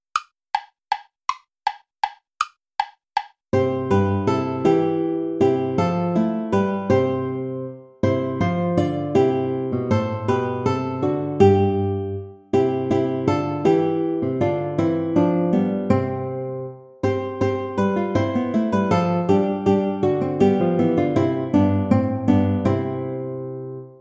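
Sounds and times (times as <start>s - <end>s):
play-along backing track without guitar: 0.0s - 23.9s.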